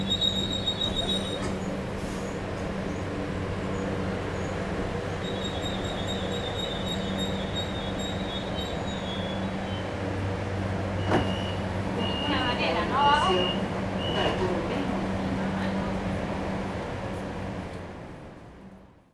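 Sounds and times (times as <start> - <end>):
train station ambience at Olivos, Buenos Aires: 0.0 - 19.1.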